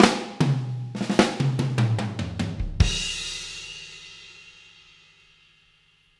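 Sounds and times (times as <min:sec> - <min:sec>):
drum fills: 0:00.0 - 0:04.1.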